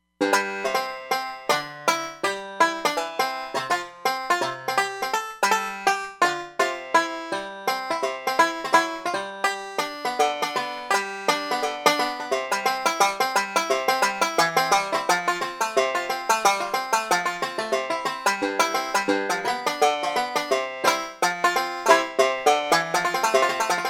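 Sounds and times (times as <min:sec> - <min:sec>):
banjo: 0:00.2 - 0:23.8.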